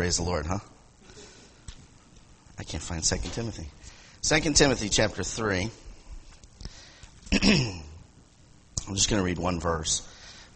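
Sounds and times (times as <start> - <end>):
speech: 0.0 - 0.7, 2.6 - 5.8, 7.3 - 7.8, 8.9 - 10.1
person clearing throat during a sermon: 7.3 - 8.0.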